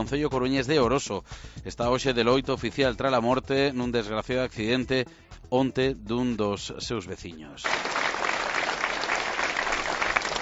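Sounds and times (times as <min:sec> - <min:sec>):
speech: 0:00.0 - 0:08.0
applause from dozens of neighbours, friends and relatives: 0:07.6 - 0:10.4.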